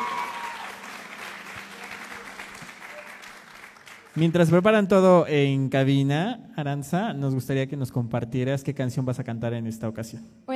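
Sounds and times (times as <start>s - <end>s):
audience applause: 0.0s - 4.7s
speech: 4.2s - 10.5s.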